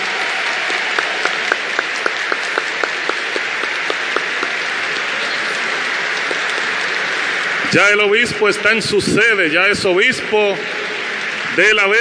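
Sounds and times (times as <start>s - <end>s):
crowd applauding: 0.0s - 8.4s
speech: 7.7s - 10.8s, 11.5s - 11.9s.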